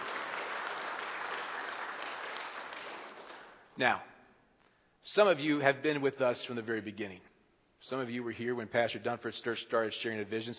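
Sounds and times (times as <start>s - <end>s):
audience applause: 0.0s - 3.6s
speech: 3.8s - 4.1s, 5.0s - 10.5s.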